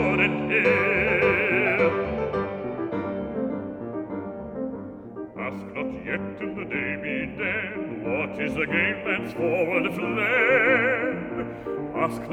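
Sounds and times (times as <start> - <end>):
person singing: 0.0 - 2.5, 5.4 - 12.3
piano: 0.0 - 12.3.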